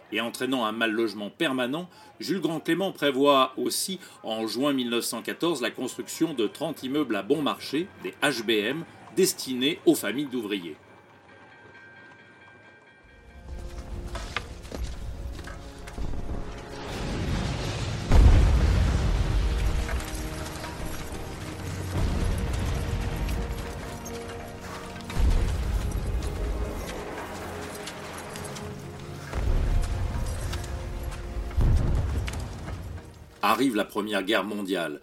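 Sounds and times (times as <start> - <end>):
speech: 0.1 - 10.8, 33.6 - 35.0
reconstructed WWI trench ambience: 5.3 - 34.5
explosions: 15.9 - 24.1, 25.0 - 27.6, 29.2 - 33.4.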